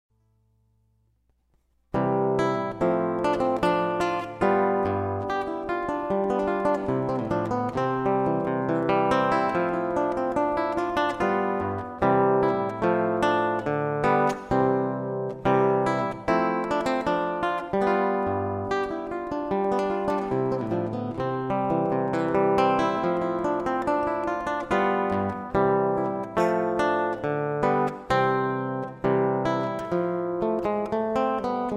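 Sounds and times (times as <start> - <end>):
classical guitar: 1.6 - 31.7.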